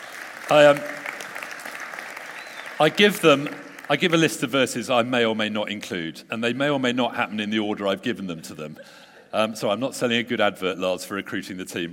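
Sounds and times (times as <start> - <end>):
crowd clapping: 0.0 - 4.5
speech: 0.5 - 1.0, 2.8 - 11.9.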